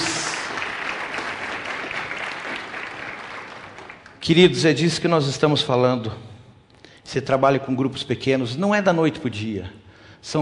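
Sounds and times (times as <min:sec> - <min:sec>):
audience applauding: 0:00.0 - 0:04.2
speech: 0:04.2 - 0:06.3, 0:07.1 - 0:10.3.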